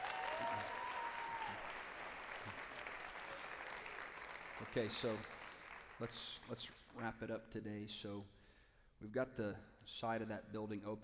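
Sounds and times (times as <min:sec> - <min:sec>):
audience applause: 0:00.0 - 0:06.2
speech: 0:04.6 - 0:05.4, 0:06.0 - 0:08.4, 0:09.0 - 0:11.0.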